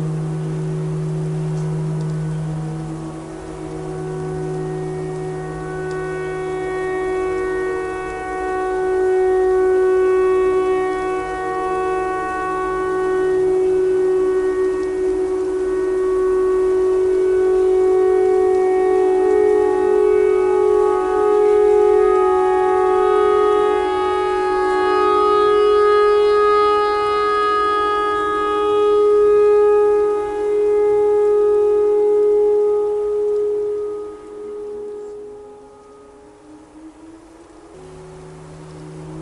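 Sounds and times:
clarinet notes: 0.0s - 39.1s
tornado siren: 0.0s - 39.1s.

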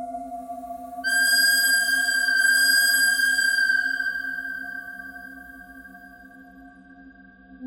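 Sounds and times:
bird crying: 1.1s - 6.0s.

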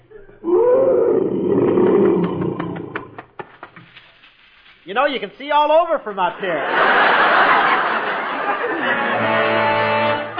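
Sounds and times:
lion roaring: 0.4s - 3.2s
speech: 5.0s - 7.6s
laughter: 6.3s - 9.6s.

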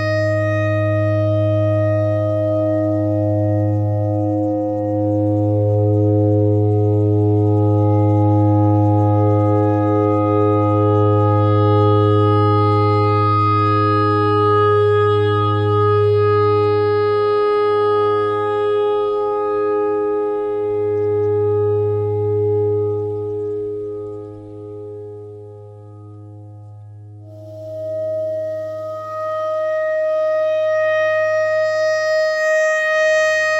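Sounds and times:
clarinet notes: 0.0s - 26.2s, 27.2s - 33.5s.

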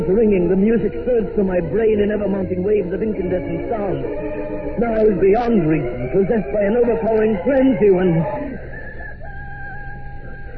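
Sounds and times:
speech: 0.1s - 8.4s
rooster crowing: 8.2s - 10.5s.

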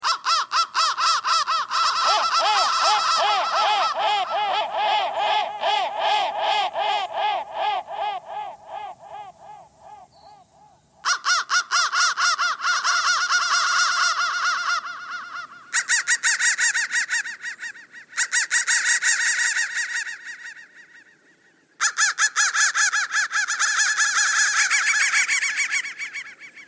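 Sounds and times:
crows cawing: 0.0s - 26.6s.

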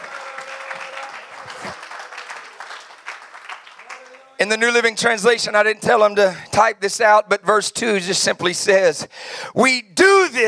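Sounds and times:
audience clapping hands: 0.0s - 4.8s
speech: 4.4s - 10.4s.

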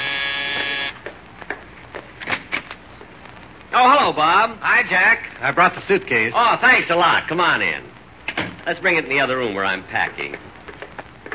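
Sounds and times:
harsh steady doorbell buzzer: 0.0s - 1.0s
speech: 3.8s - 7.9s, 8.7s - 10.5s.

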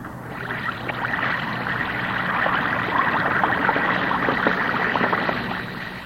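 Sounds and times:
Alka-Seltzer tablet fizzing in water: 0.1s - 6.0s.

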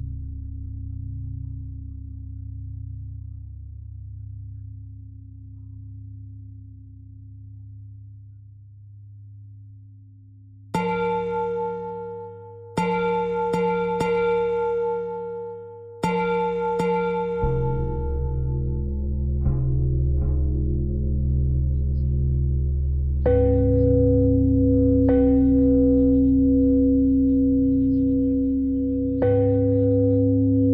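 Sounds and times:
pentatonic bell melody: 10.8s - 30.7s.

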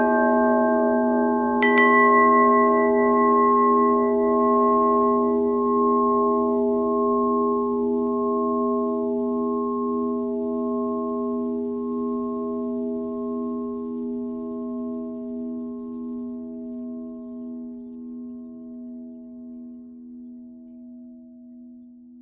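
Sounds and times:
long bell tones: 0.0s - 15.0s.

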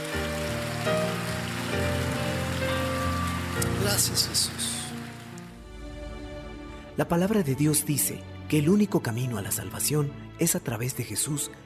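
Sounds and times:
loud dense audience applause: 0.0s - 5.6s
sustained keyboard chords: 0.0s - 5.6s
speech: 3.9s - 4.6s, 7.0s - 11.6s.

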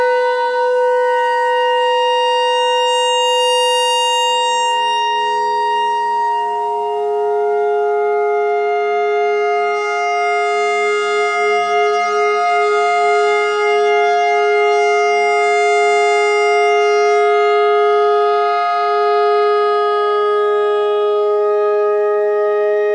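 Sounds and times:
clarinet notes in E pentatonic: 0.0s - 22.9s.

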